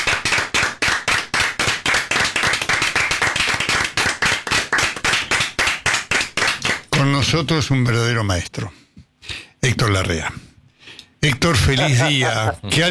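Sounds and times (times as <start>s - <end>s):
studio audience applause: 0.0s - 6.8s
speech: 7.3s - 8.8s, 9.7s - 10.4s, 11.2s - 12.8s
laughter: 11.6s - 12.8s.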